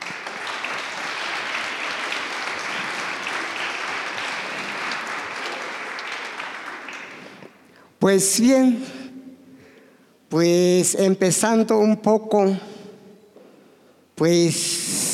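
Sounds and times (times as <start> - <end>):
audience applause: 0.0 - 7.7
speech: 8.0 - 9.0, 10.3 - 12.7, 14.2 - 15.0.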